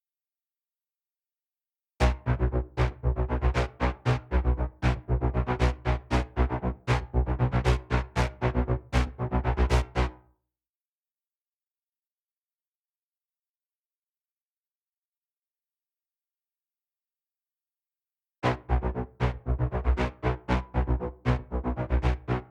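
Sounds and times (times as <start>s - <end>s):
heavy synth: 2.0s - 10.1s, 18.4s - 22.5s.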